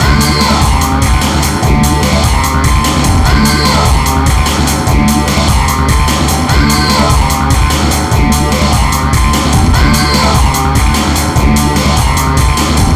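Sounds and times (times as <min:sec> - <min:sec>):
hardcore breakbeat in D major: 0:00.0 - 0:12.9.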